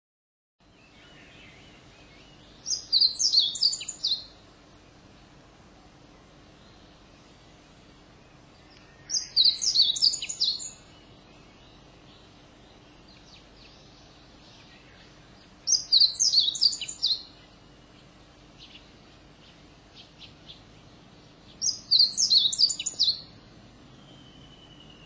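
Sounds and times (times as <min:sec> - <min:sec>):
meadow bunting singing bright high chirping notes: 0:00.6 - 0:25.0.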